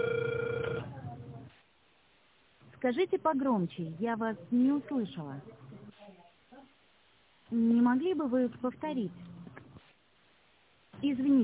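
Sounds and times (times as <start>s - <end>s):
ringback tone of an outgoing telephone call: 0.0s - 0.9s
speech: 2.8s - 5.7s, 7.5s - 9.3s, 11.0s - 11.4s.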